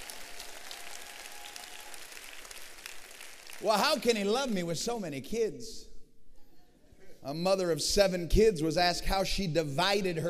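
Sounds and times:
crowd clapping: 0.0s - 4.3s
speech: 3.6s - 5.9s, 7.2s - 10.2s.

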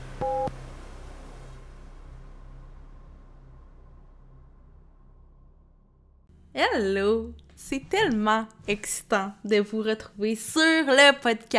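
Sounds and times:
short two-note electronic beep: 0.2s - 0.5s
speech: 6.8s - 11.5s.

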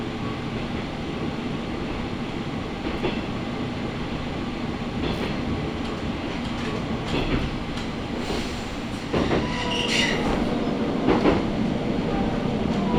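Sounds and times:
Matsuura Railway train wheels and motor rumbling: 0.0s - 12.9s
train squeals and clanks: 9.1s - 10.4s.

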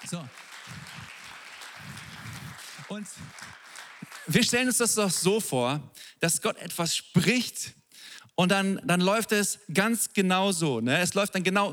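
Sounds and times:
speech: 0.0s - 1.0s, 2.9s - 3.6s, 4.2s - 7.8s, 8.4s - 11.7s
audience applause: 0.0s - 5.3s.

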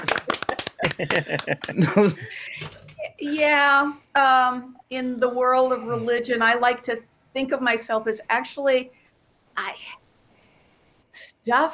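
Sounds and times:
clapping: 0.0s - 2.0s
laughter: 0.0s - 2.7s
speech: 1.0s - 9.0s, 9.6s - 10.0s, 11.1s - 11.7s.

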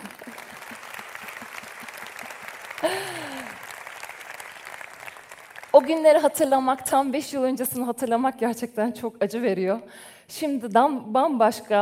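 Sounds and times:
laughter: 0.0s - 3.7s
audience applause: 0.0s - 6.3s
speech: 2.8s - 3.3s, 5.8s - 11.7s.

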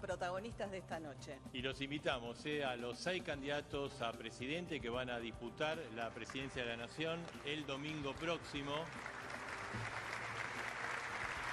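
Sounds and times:
speech: 0.0s - 10.0s
sustained applause from a large audience: 5.7s - 11.5s.

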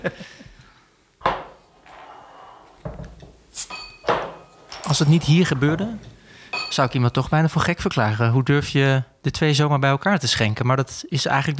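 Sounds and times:
speech: 0.0s - 0.4s, 4.9s - 11.5s
laughter: 0.0s - 0.6s
beer bottles clinking while being handled: 0.6s - 7.6s.

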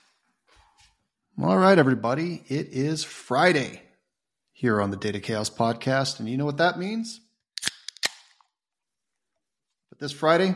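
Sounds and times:
speech: 1.4s - 3.9s, 4.6s - 7.2s, 10.0s - 10.5s
beer can cracking open: 7.6s - 8.4s.

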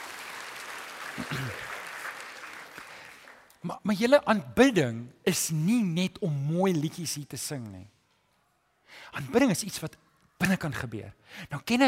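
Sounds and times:
crowd applause: 0.0s - 3.6s
speech: 1.2s - 1.7s, 3.6s - 8.0s, 8.9s - 11.8s.

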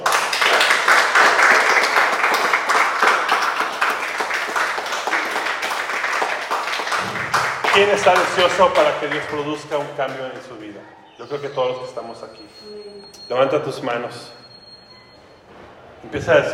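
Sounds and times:
audience applauding: 0.0s - 12.2s
speech: 7.8s - 14.4s, 16.0s - 16.5s.

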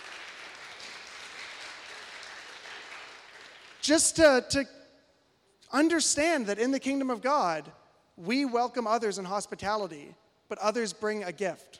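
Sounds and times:
crowd applauding: 0.0s - 4.1s
speech: 3.8s - 4.8s, 5.7s - 11.7s.

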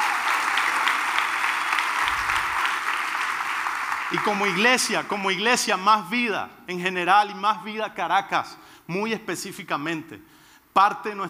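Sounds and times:
crowd applauding: 0.0s - 5.0s
speech: 4.1s - 11.2s.

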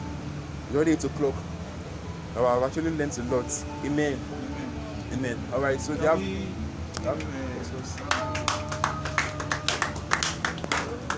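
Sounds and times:
speech: 0.7s - 1.6s, 2.4s - 8.6s
audience clapping: 8.0s - 11.1s.

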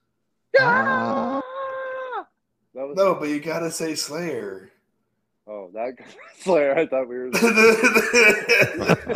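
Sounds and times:
speech: 0.6s - 1.2s, 2.9s - 4.7s, 5.7s - 9.1s
person yelling in imitation of a metal scream: 0.6s - 2.3s
laughter: 7.4s - 9.1s.

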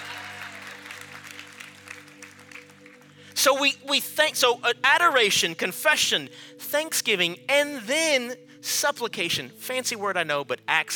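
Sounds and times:
audience clapping: 0.0s - 3.3s
speech: 3.4s - 10.9s.

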